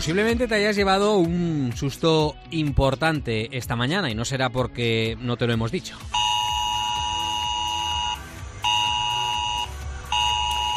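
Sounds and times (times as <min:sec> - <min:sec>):
speech: 0:00.0 - 0:06.3
mobile phone emergency alert tone: 0:06.1 - 0:10.7.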